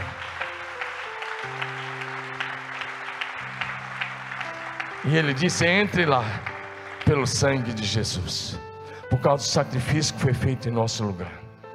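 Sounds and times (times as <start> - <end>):
crowd applause: 0.0 - 8.3
speech: 5.0 - 6.5, 7.2 - 11.4.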